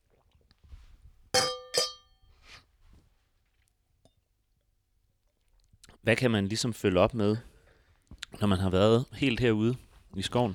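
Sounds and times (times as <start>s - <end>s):
wine glasses clinking in a toast: 1.4s - 2.2s
speech: 6.0s - 7.5s, 8.4s - 10.5s.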